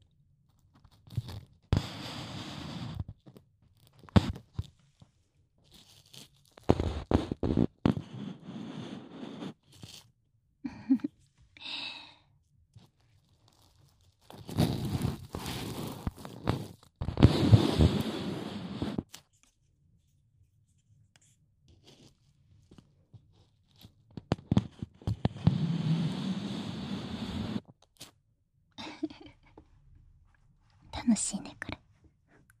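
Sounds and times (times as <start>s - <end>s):
dry, crackly scratching and rustling of ear cleaning: 0.5s - 10.1s, 12.7s - 20.1s, 20.7s - 28.2s
speech: 31.2s - 31.6s.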